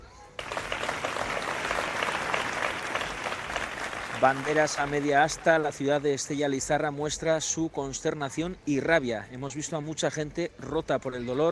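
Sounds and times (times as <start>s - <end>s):
crowd applauding at a town hall vigil: 0.4s - 6.7s
speech: 4.2s - 11.5s.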